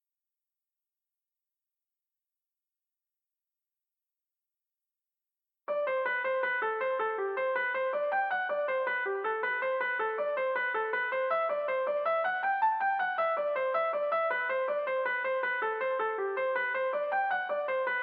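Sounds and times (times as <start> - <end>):
piano music from an action RPG game: 5.7 - 18.0.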